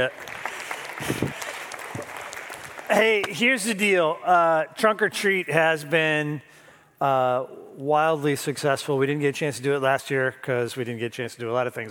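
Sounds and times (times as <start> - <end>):
speech: 0.0 - 0.4, 1.0 - 1.3, 2.9 - 11.8
applause: 0.0 - 3.6.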